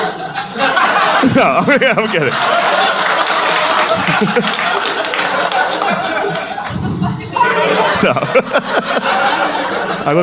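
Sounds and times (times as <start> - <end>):
laughter: 0.0 - 10.2
speech: 1.2 - 3.2, 4.0 - 4.8, 8.0 - 10.2
crowd clapping: 1.4 - 6.9.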